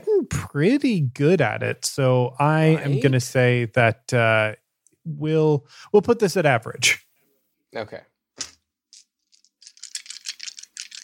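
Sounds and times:
speech: 0.3 - 7.0, 7.7 - 8.5
dice rolling: 8.4 - 11.0.

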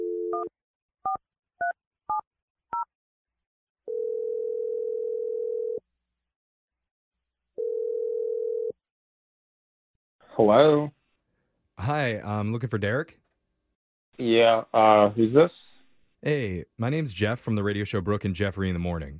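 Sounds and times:
steady phone tone: 0.0 - 0.5, 3.9 - 5.8, 7.6 - 8.8
speech: 10.4 - 11.0, 11.8 - 13.2, 14.2 - 15.6, 16.2 - 19.1.

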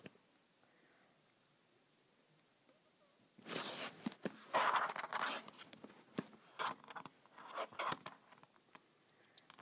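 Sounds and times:
scratching on a calculator: 3.6 - 8.5.

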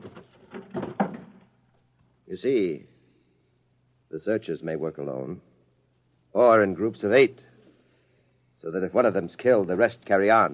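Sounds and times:
chair shoved under a door: 0.0 - 1.4
speech: 2.3 - 2.9, 4.1 - 5.5, 6.3 - 7.5, 8.6 - 10.5.

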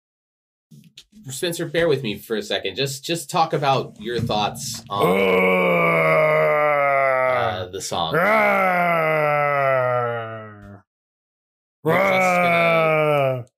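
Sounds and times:
speech: 1.2 - 6.3, 7.6 - 10.2, 11.8 - 12.8
man imitating a bear-like growl: 4.9 - 10.8, 11.9 - 13.5.

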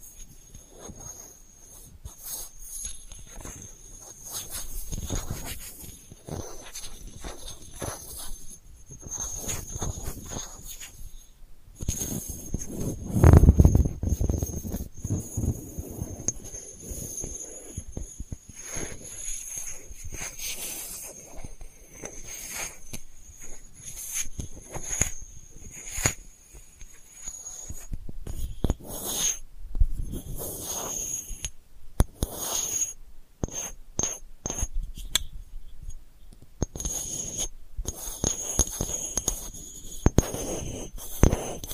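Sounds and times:
faint steady high whine: 0.0 - 32.0
delicate scratching: 0.0 - 41.7.

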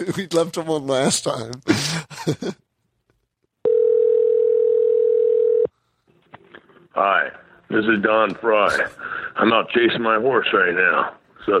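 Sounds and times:
speech: 0.0 - 2.6, 7.0 - 11.5
laughter: 1.7 - 2.6
telephone ringback tone: 3.6 - 5.7.

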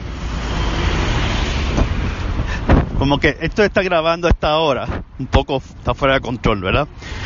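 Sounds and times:
truck passing by on the street: 0.0 - 3.5
speech: 3.0 - 7.2.

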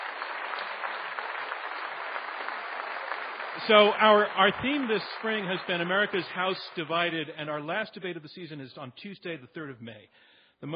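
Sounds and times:
audience applause: 0.0 - 7.2
speech: 3.6 - 10.7.

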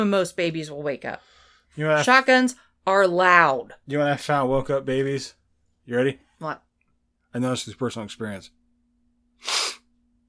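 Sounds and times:
speech: 0.0 - 6.6, 7.3 - 8.6, 9.4 - 9.6
sniff: 9.4 - 9.9.

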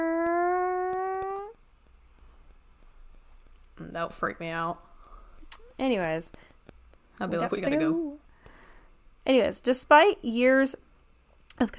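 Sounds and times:
nuclear power plant warning siren test: 0.0 - 1.5
speech: 4.0 - 4.9, 5.8 - 6.5, 7.2 - 8.1, 9.3 - 10.8, 11.6 - 11.7.

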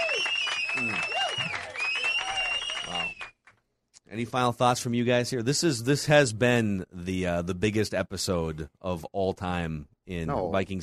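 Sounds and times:
applause: 0.0 - 3.6
speech: 4.2 - 10.8.

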